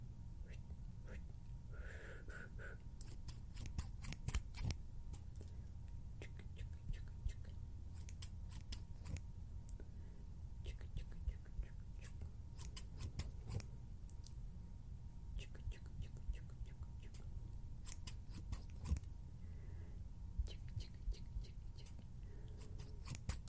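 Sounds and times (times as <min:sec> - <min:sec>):
faint constant tone: 0:00.0 - 0:23.4
scissors snipping: 0:03.0 - 0:05.2, 0:08.0 - 0:09.2, 0:12.0 - 0:13.7, 0:17.8 - 0:19.1, 0:21.8 - 0:23.4.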